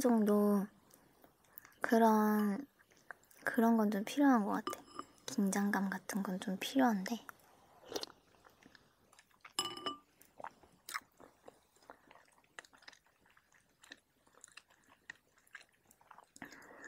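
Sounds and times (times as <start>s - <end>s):
speech: 0.0s - 0.8s, 1.8s - 2.7s, 3.4s - 7.3s
chewing squid as a snack at a drinking session: 2.6s - 3.5s, 7.3s - 16.8s.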